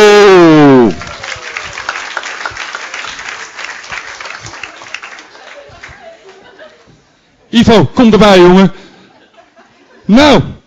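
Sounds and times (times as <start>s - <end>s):
audience applause: 0.8s - 6.5s
laughter: 4.5s - 7.1s, 8.8s - 10.1s
speech: 7.6s - 8.8s, 10.1s - 10.6s.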